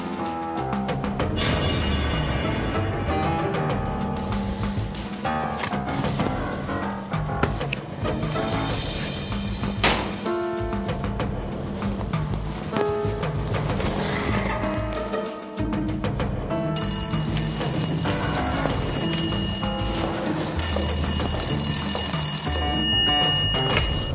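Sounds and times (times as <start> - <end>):
music: 0.0 - 24.1
telephone ringing: 16.8 - 24.1.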